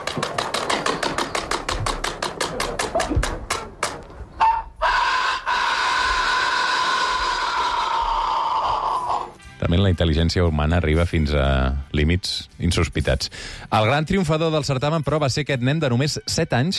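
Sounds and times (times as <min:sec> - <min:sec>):
accelerating flapping claps: 0:00.0 - 0:04.0
man imitating a rooster crowing: 0:04.4 - 0:09.2
speech: 0:09.9 - 0:16.7.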